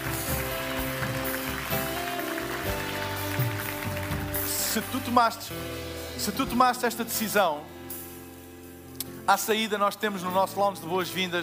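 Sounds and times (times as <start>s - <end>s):
crowd applause: 0.0s - 5.3s
soft sustained music: 0.0s - 11.4s
speech: 4.8s - 7.8s, 9.3s - 11.4s.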